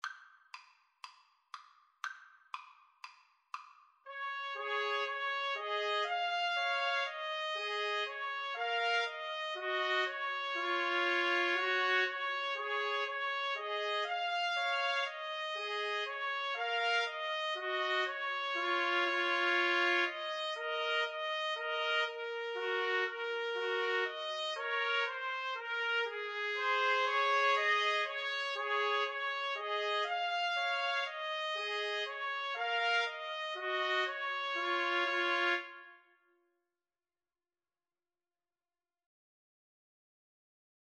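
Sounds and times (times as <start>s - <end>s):
trumpet trio: 4.1s - 36.0s.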